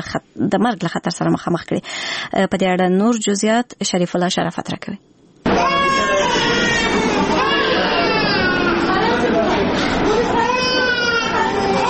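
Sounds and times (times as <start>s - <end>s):
speech: 0.0s - 5.2s
babies crying in the children's ward of Tarinkot provincial hospital: 5.5s - 11.8s
voices and chatter: 5.5s - 11.8s.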